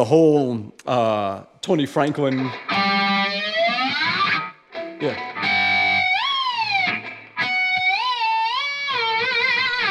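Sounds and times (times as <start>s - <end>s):
speech: 0.0s - 2.9s, 5.0s - 5.4s
sliding guitar harmonics: 2.2s - 9.8s.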